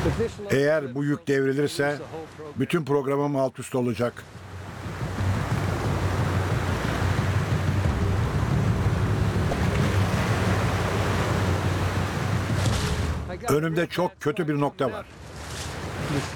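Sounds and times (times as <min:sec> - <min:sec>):
big waves crashing against rocks: 0:00.0 - 0:00.5, 0:04.2 - 0:13.6, 0:14.9 - 0:16.3
speech: 0:00.0 - 0:04.4, 0:13.5 - 0:15.2, 0:16.1 - 0:16.3.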